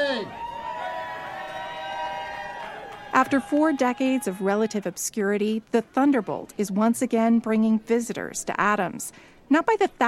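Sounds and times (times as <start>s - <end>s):
crowd cheering at a race medal ceremony: 0.0s - 5.1s
speech: 3.2s - 10.0s.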